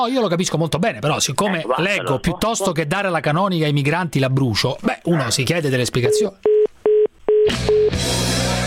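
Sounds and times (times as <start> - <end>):
speech: 0.0 - 6.5, 7.5 - 8.5
telephone tone after caller hangs up: 6.1 - 8.0.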